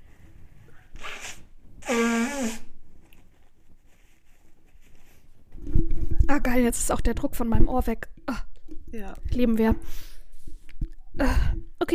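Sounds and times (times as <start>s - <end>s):
person blowing nose: 0.9s - 2.8s
speech: 6.4s - 10.1s, 11.2s - 11.9s.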